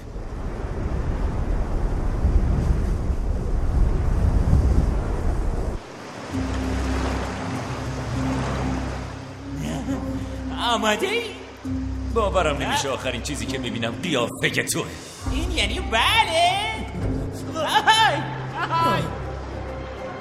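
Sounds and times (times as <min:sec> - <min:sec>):
stormy wind roaring: 0:00.0 - 0:09.4
crashing storm waves: 0:00.0 - 0:20.1
speech: 0:10.8 - 0:16.8.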